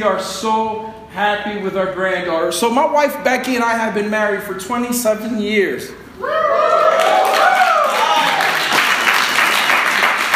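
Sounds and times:
speech: 0:00.0 - 0:06.4
audience clapping: 0:06.8 - 0:10.3.

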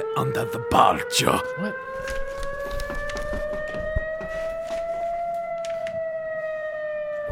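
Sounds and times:
facility alarm siren going off: 0:00.0 - 0:07.2
speech: 0:00.2 - 0:02.9
clanks and knocks: 0:02.0 - 0:04.9.

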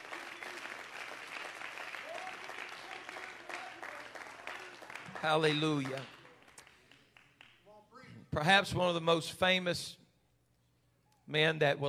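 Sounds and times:
audience clapping: 0:00.0 - 0:07.8
speech: 0:05.2 - 0:06.2, 0:08.4 - 0:10.0, 0:11.3 - 0:11.8.

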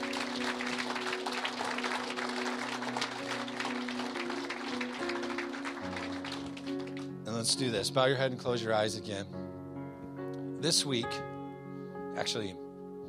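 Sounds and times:
audience clapping hands: 0:00.0 - 0:07.2
sustained keyboard or organ chords: 0:00.0 - 0:13.0
speech: 0:07.4 - 0:09.4, 0:10.6 - 0:11.3, 0:12.2 - 0:12.6.

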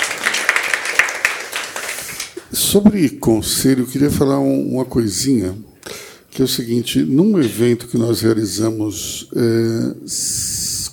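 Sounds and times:
audience applause: 0:00.0 - 0:02.4
speech: 0:02.6 - 0:05.8, 0:06.4 - 0:10.6.

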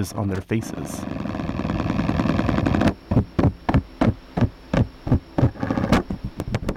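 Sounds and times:
speech: 0:00.0 - 0:01.3
spider mating vibration buzzing drone: 0:00.0 - 0:06.7
spider leg tapping vibrations: 0:02.6 - 0:06.7.

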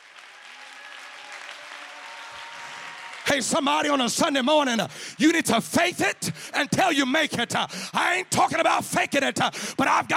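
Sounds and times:
audience clapping hands: 0:00.0 - 0:05.5
speech: 0:03.3 - 0:10.1.

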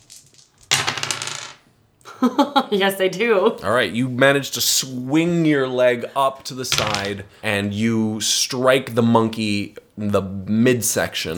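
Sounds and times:
dice being rolled: 0:00.0 - 0:01.6, 0:06.7 - 0:07.2
speech: 0:02.2 - 0:11.3.

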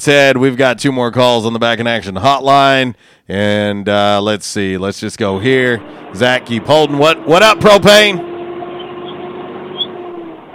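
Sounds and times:
speech: 0:00.0 - 0:08.3
gas truck engine revving: 0:05.0 - 0:10.5.

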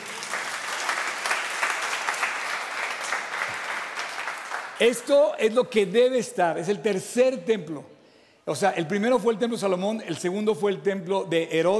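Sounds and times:
audience applause: 0:00.0 - 0:05.1
speech: 0:04.8 - 0:07.9, 0:08.5 - 0:11.7.

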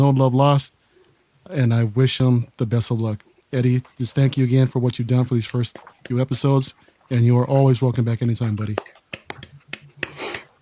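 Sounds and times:
speech: 0:00.1 - 0:00.8, 0:01.4 - 0:09.0
one person clapping hands: 0:08.4 - 0:10.6.

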